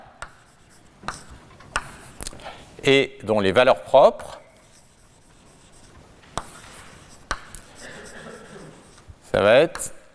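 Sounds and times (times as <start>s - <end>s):
chalk or marker writing on a board during a maths lecture: 0.0s - 2.3s, 4.6s - 9.9s
speech: 2.8s - 4.4s, 9.4s - 10.0s.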